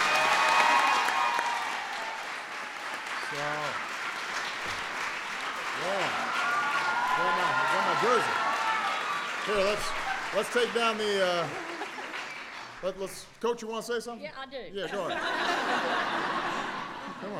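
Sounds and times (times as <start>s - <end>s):
audience applause: 0.0s - 13.2s
speech: 3.3s - 3.9s, 5.8s - 6.2s, 9.5s - 11.7s, 12.8s - 16.5s, 17.2s - 17.3s
laughter: 9.8s - 12.4s, 14.8s - 17.3s.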